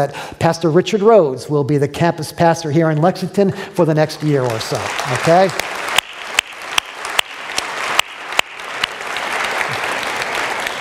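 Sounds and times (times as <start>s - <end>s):
speech: 0.0s - 5.7s
audience applause: 4.2s - 10.8s.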